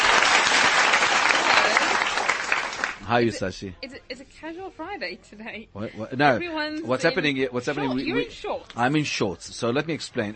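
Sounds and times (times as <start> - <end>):
audience applause from a large crowd at a live stage show: 0.0 - 3.1
speech: 3.1 - 10.3.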